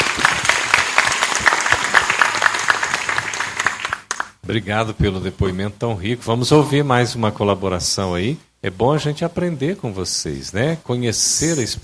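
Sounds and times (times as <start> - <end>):
audience applause: 0.0 - 4.4
speech: 4.5 - 11.8.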